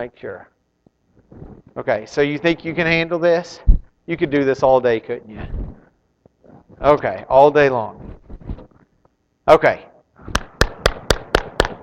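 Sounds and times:
speech: 0.0 - 0.6, 1.3 - 5.6, 6.8 - 8.2, 9.5 - 10.4
hand clapping: 10.3 - 11.8.

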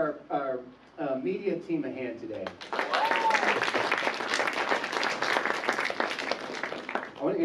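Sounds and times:
speech: 0.0 - 4.4
audience applause: 2.6 - 7.3.

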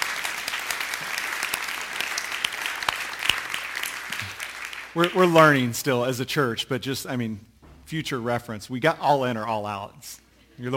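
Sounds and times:
audience applause: 0.0 - 5.2
speech: 5.0 - 10.7.

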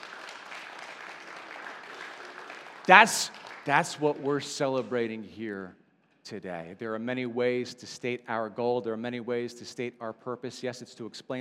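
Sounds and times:
audience clapping: 0.0 - 5.0
speech: 2.9 - 11.3.

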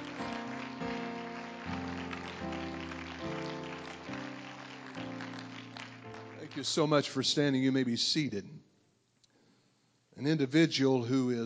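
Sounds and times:
audience clapping hands: 0.0 - 7.2
speech: 6.6 - 8.6, 10.2 - 11.4.

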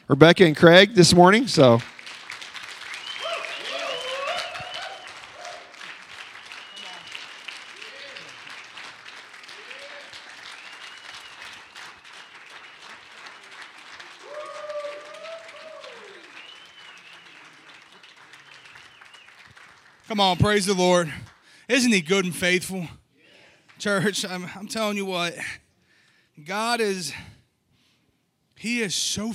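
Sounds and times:
speech: 0.1 - 1.9, 20.2 - 23.0, 23.8 - 25.6, 26.4 - 27.4, 28.6 - 29.3
church congregation clapping to welcome guests during a morning service: 1.0 - 22.6, 23.6 - 25.0
voices cheering: 2.8 - 19.2, 20.1 - 22.3.

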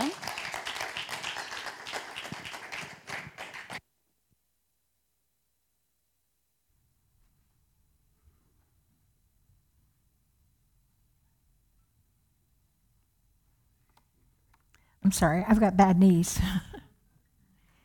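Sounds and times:
church congregation applauding to welcome a guest speaker: 0.0 - 3.8
speech: 15.0 - 16.7.

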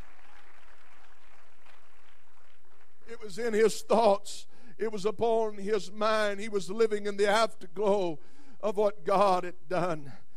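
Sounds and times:
audience clapping hands: 0.0 - 3.4
speech: 3.2 - 10.2.

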